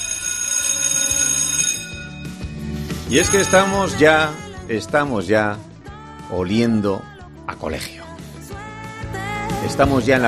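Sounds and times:
electric school bell ringing: 0.0s - 4.5s
speech: 3.1s - 5.7s, 6.3s - 8.0s, 9.6s - 10.2s.

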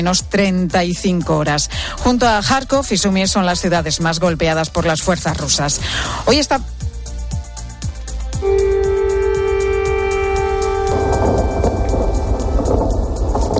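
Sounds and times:
speech: 0.0s - 6.7s
air raid siren in Kiev: 8.4s - 13.5s.

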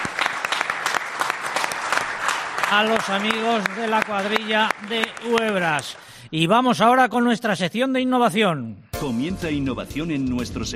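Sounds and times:
audience applause for a folk group at a live event: 0.0s - 6.2s
speech: 2.7s - 10.7s.

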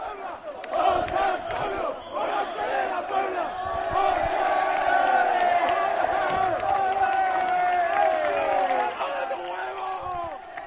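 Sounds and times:
crowd of young people cheering outside hotel: 0.0s - 10.6s
clapping: 4.7s - 10.6s.

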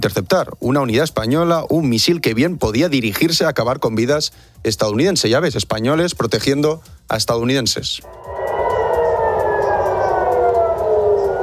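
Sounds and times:
speech: 0.0s - 8.5s
air raid sirens wailing: 8.0s - 11.4s.

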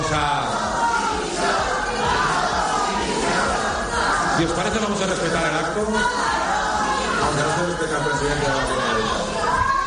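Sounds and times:
crowd shouting protest chants: 0.0s - 9.8s
speech: 4.4s - 6.4s, 7.2s - 9.3s.

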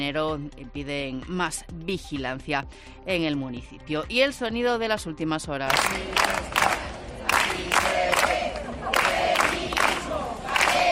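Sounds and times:
speech: 0.0s - 6.9s
hundreds of protesters chanting a slogan at the obelisk in A Coruña: 5.8s - 10.9s.

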